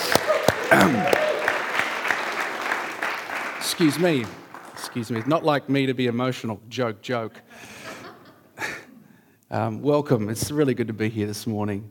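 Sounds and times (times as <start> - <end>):
laughter: 0.0 - 1.5, 7.4 - 8.8
church congregation applause during a morning service: 0.0 - 5.9
speech: 0.8 - 1.2, 3.8 - 7.7, 9.5 - 11.9.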